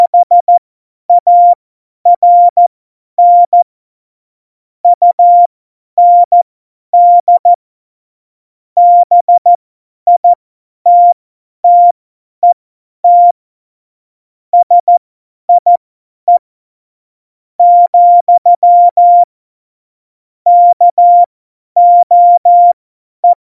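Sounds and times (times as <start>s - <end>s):
CW Morse code beeps: 0.0s - 0.5s, 1.2s - 1.6s, 2.2s - 2.6s, 3.2s - 3.6s, 5.0s - 6.4s, 7.0s - 7.5s, 8.8s - 9.5s, 10.1s - 13.4s, 14.6s - 15.0s, 15.6s - 16.4s, 17.6s - 19.3s, 20.5s - 23.4s.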